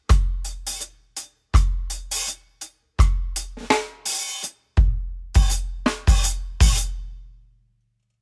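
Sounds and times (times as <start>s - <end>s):
Zildjian A series 13 inch New Beat hi-hats: 0.0s - 4.6s, 5.4s - 7.0s.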